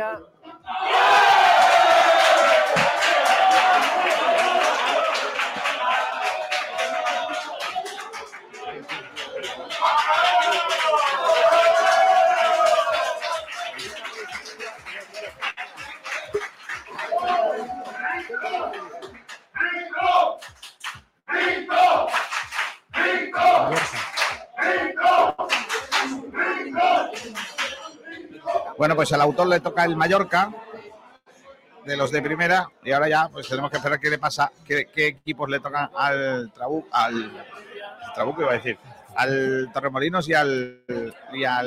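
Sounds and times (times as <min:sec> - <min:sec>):
speech: 0:00.0 - 0:01.1, 0:28.9 - 0:30.6, 0:31.9 - 0:37.6, 0:38.2 - 0:41.6
large stadium crowd roaring and chanting: 0:00.4 - 0:20.7, 0:21.3 - 0:30.3.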